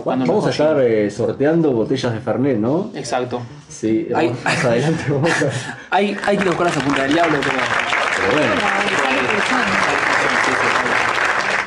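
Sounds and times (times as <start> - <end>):
speech: 0.0 - 9.8
laughter: 4.4 - 5.8, 8.1 - 11.1
applause sound effect: 6.1 - 11.6.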